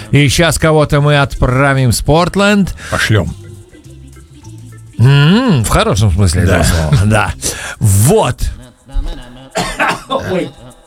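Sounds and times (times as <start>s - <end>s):
speech: 0.1s - 3.4s, 5.0s - 10.8s
person coughing after choking: 8.9s - 10.8s.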